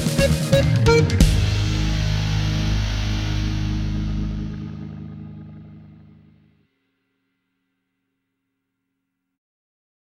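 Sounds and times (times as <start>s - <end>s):
rock music: 0.0s - 6.4s.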